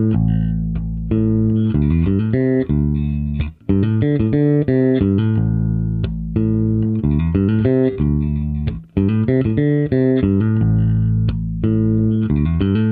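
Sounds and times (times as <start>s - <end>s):
jazz bass through a FaitalPro 15PR400 speaker and SVT7PRO amplifier: 0.0s - 12.9s.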